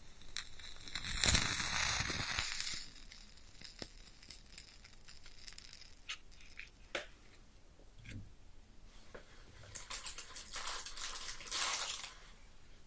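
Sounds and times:
match striking and flaring: 0.0 - 6.9, 9.9 - 12.2
match flame crackling and popping: 0.0 - 7.1, 9.8 - 12.2
match flame hissing and sizzling as it is put out: 0.3 - 4.9.

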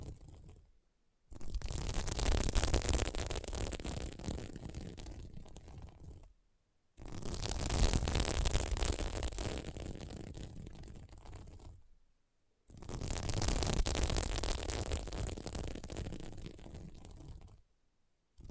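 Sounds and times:
scratching on a sequin mermaid pillow: 1.4 - 6.2, 7.0 - 11.8, 12.7 - 17.6.

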